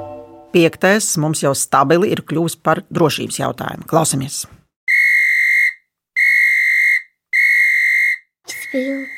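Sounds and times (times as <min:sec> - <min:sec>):
speech: 0:00.6 - 0:04.6, 0:08.8 - 0:09.1
traffic police whistle blasts: 0:04.9 - 0:09.1.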